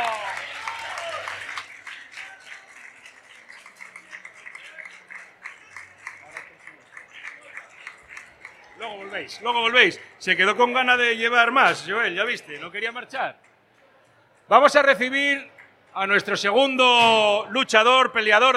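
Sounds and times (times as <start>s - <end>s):
audience applause: 0.0s - 10.1s
speech: 8.9s - 13.5s, 14.5s - 18.5s.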